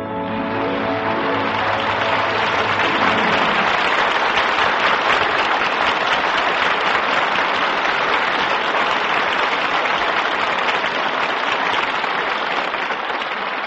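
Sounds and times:
audience applause: 0.2s - 13.6s.

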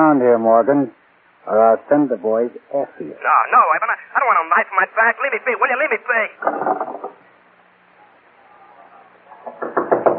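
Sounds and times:
speech: 0.0s - 7.2s
knocking on a door: 9.4s - 10.1s.

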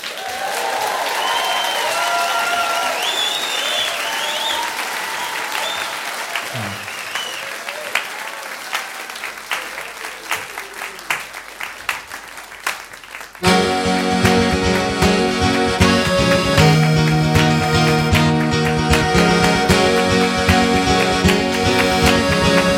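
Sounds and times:
audience applause welcoming a band to the stage: 0.0s - 22.7s
audience whistles: 1.2s - 2.1s, 2.8s - 7.6s.

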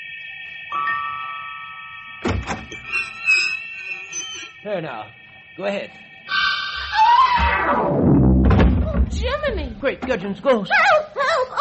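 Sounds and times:
sustained tones: 0.0s - 10.7s
speech: 0.7s - 1.2s, 4.6s - 6.0s, 9.4s - 11.5s
lock clunk as a diamond key opens a locked door: 2.2s - 2.9s.

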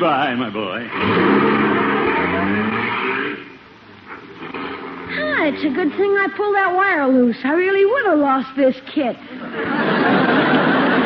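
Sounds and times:
speech: 0.0s - 3.3s, 4.4s - 11.0s
quiet uneven hum: 0.0s - 11.0s
car engine rumbling and pulling away: 0.8s - 6.1s
laughter: 9.3s - 11.0s.

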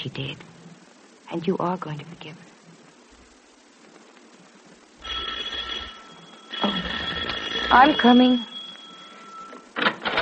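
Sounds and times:
speech: 0.0s - 0.6s, 1.3s - 2.5s, 7.7s - 8.5s
electric doorbell ringing: 5.0s - 9.8s.

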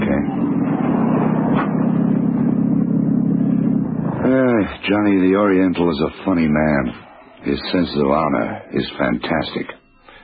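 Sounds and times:
car pulling up outside: 0.0s - 5.0s
speech: 4.6s - 9.8s.

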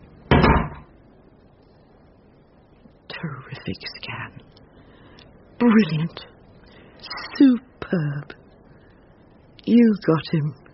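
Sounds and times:
door shutting: 0.3s - 0.9s
speech: 3.2s - 4.5s, 5.6s - 6.3s, 7.1s - 8.4s, 9.6s - 10.6s.

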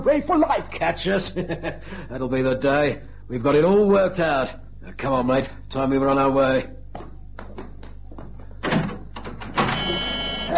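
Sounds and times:
speech: 0.0s - 6.8s
door shutting: 8.6s - 10.2s.

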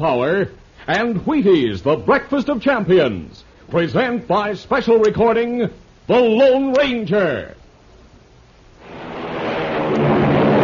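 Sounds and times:
speech: 0.0s - 7.6s
American Airlines flagship airliner taking off: 8.8s - 10.6s.

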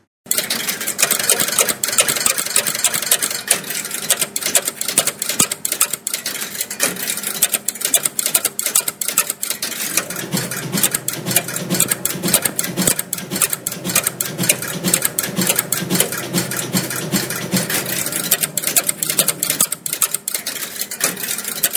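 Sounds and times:
old computer printer printing: 0.3s - 21.7s
old relay computer relays clicking while running a program: 0.3s - 21.7s.

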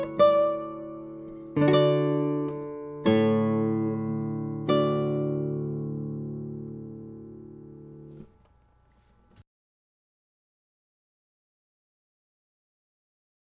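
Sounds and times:
classical nylon string guitars in concert: 0.0s - 9.4s.

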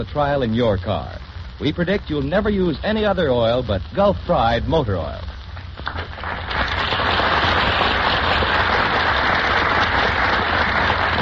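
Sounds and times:
speech: 0.0s - 6.1s
audience applause: 5.8s - 11.2s.

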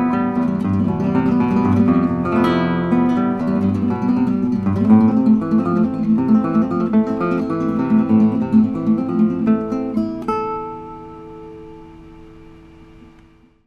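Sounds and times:
nylon string classical guitar: 0.0s - 13.6s.

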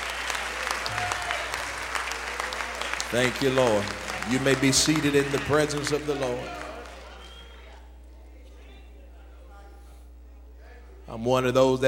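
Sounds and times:
audience clapping hands: 0.0s - 7.9s
speech: 3.1s - 6.6s, 11.2s - 11.8s.

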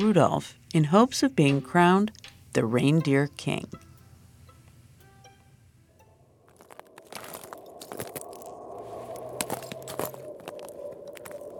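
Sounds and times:
speech: 0.0s - 3.9s
footsteps crunching on frozen lake ice: 6.5s - 11.5s.

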